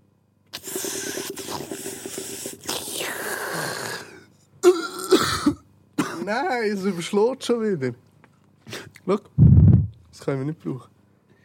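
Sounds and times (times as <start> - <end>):
person coughing into a microphone: 4.6 - 6.4
speech: 6.3 - 8.1, 9.1 - 9.4, 10.3 - 10.9.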